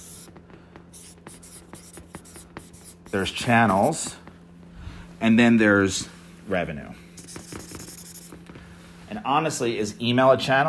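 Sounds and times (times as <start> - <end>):
handwriting with a pen or pencil: 0.0 - 0.3, 0.9 - 4.0, 7.2 - 8.3
speech: 3.1 - 4.2, 5.2 - 7.0, 9.3 - 10.6.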